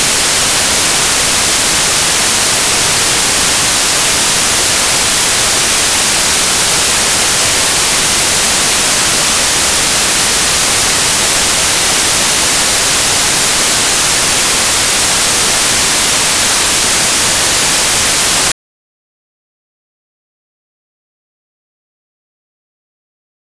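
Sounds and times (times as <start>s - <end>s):
white noise: 0.0s - 18.5s.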